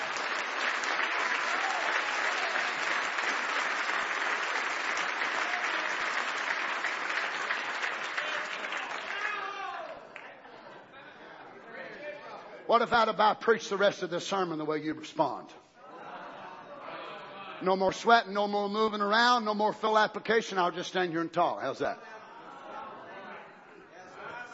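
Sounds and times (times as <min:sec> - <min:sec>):
church congregation clapping hands: 0:00.0 - 0:10.3
speech: 0:12.7 - 0:15.7, 0:17.6 - 0:22.2.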